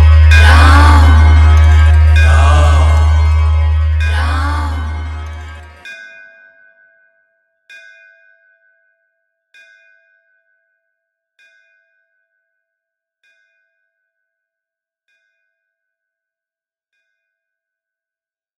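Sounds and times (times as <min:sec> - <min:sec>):
Ram Navami special beat: 0:00.0 - 0:05.8.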